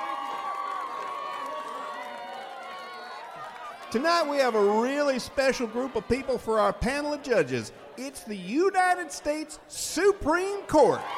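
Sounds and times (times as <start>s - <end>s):
audience applause: 0.0s - 7.2s
audience cheering: 0.0s - 11.1s
speech: 3.9s - 11.1s.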